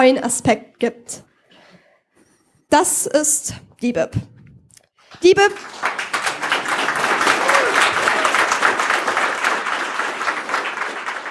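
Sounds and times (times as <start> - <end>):
speech: 0.0 - 1.3, 2.7 - 4.3, 5.1 - 6.1
audience applause: 5.6 - 11.2.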